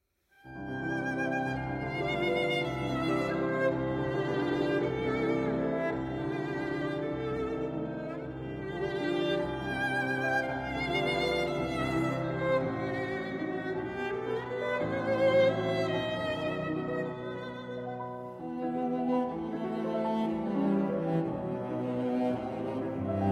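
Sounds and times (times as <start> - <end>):
piano trio playing: 0.5 - 23.3.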